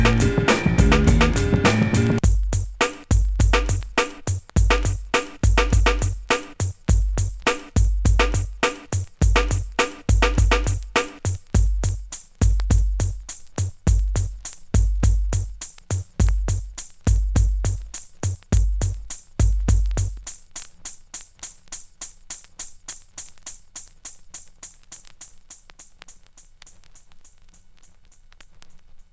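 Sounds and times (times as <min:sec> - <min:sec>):
instrumental track: 0:00.0 - 0:20.3.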